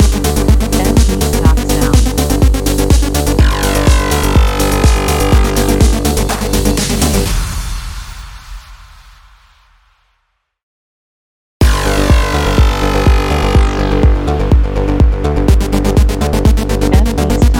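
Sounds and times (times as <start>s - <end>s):
pulse engine: 0.0s - 7.3s, 11.6s - 17.5s.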